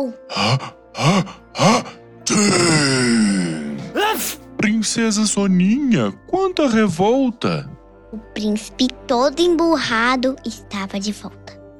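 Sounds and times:
speech: 0:00.0 - 0:03.0, 0:04.2 - 0:11.7
sneeze: 0:04.0 - 0:04.5.

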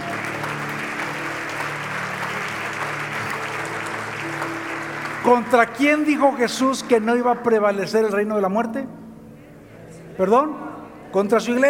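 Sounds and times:
audience applause: 0:00.0 - 0:07.3
speech: 0:05.3 - 0:09.0, 0:10.2 - 0:11.6.

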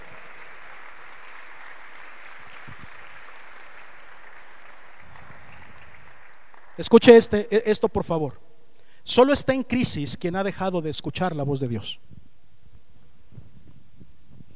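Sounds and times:
audience applause: 0:00.0 - 0:07.0
speech: 0:06.8 - 0:08.4, 0:09.0 - 0:12.1.

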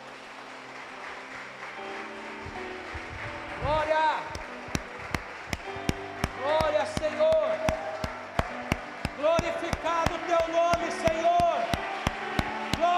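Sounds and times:
audience applauding: 0:00.0 - 0:12.9.

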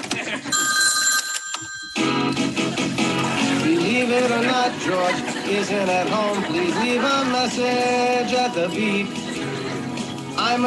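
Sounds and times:
laughter: 0:00.0 - 0:00.8, 0:02.5 - 0:10.6
telephone ringing with incoming call: 0:00.5 - 0:02.8
speech: 0:04.1 - 0:09.2, 0:10.4 - 0:10.6.

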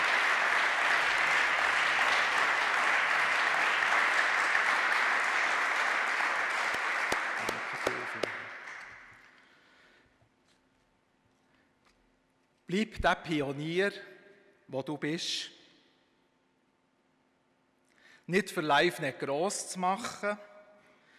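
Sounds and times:
audience applause: 0:00.0 - 0:09.3
speech: 0:12.7 - 0:14.1, 0:14.7 - 0:15.6, 0:18.3 - 0:20.5.

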